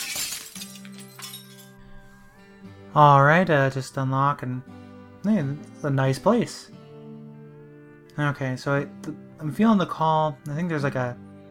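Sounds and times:
glass shards tinkling: 0.0s - 1.8s
pane of glass smashed with a rock: 0.0s - 1.8s
speech: 2.9s - 6.8s, 8.2s - 11.2s.

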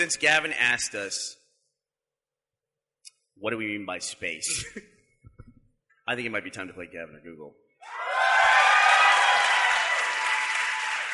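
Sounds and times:
speech: 0.0s - 1.4s, 3.4s - 4.9s, 6.1s - 8.2s
studio audience applauding and cheering: 7.8s - 11.1s.

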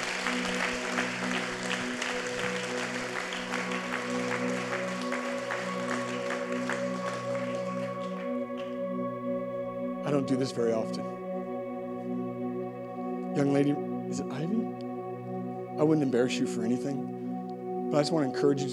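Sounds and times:
audience applause: 0.0s - 8.8s
sustained organ-like chords: 0.0s - 18.7s
speech: 10.2s - 11.1s, 13.4s - 14.8s, 15.8s - 17.1s, 17.9s - 18.7s.

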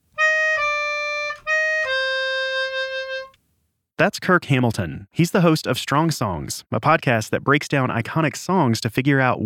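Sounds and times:
four notes played on a melodica: 0.1s - 3.4s
speech: 4.0s - 9.4s.

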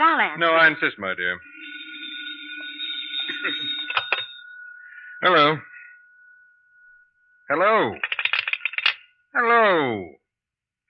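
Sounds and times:
speech: 0.2s - 1.5s, 5.2s - 5.7s, 7.5s - 8.1s, 9.3s - 10.2s
telephone ringing: 0.4s - 9.1s
low hum: 1.4s - 9.1s.

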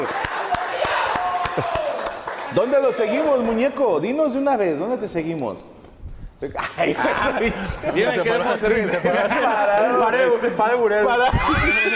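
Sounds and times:
audience applause: 0.0s - 3.2s
speech: 1.6s - 1.8s, 2.5s - 5.8s, 6.4s - 11.9s
laughter: 6.6s - 10.5s, 11.1s - 11.9s.

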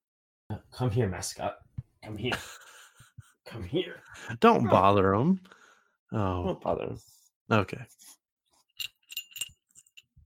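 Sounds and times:
speech: 0.8s - 2.6s, 3.5s - 8.2s
small cat collar bell jingling: 8.8s - 10.2s.

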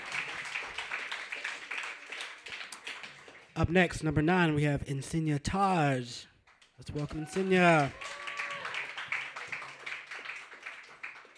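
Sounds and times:
crowd applauding: 0.0s - 3.6s, 6.5s - 11.3s
speech: 3.6s - 8.0s.

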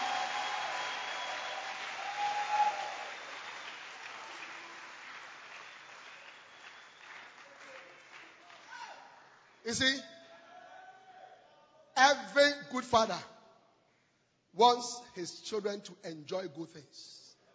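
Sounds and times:
audience clapping hands: 0.0s - 9.7s
speech: 9.7s - 10.1s, 12.0s - 13.3s, 14.6s - 17.2s.

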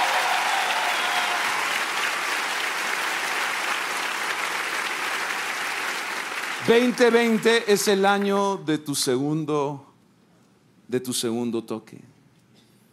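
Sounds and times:
audience applause: 0.0s - 8.3s
speech: 6.6s - 9.9s, 10.9s - 12.2s.

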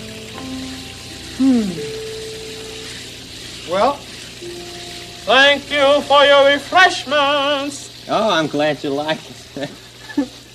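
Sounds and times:
cool water running: 0.0s - 10.5s
faint humming tones: 0.0s - 10.5s
speech: 1.4s - 2.0s, 3.7s - 10.4s
swooping voiced sound: 1.4s - 2.0s.

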